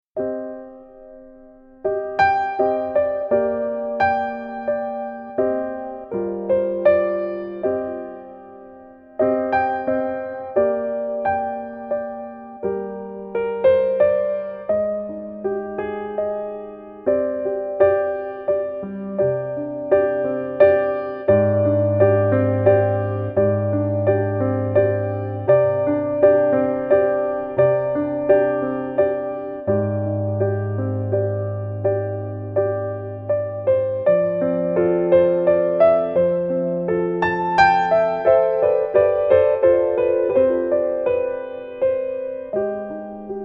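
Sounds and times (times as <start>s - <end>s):
calm piano: 0.1s - 43.4s.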